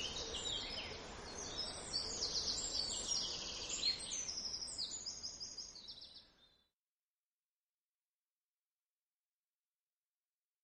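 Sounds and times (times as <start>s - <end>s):
bird song: 0.0s - 6.8s.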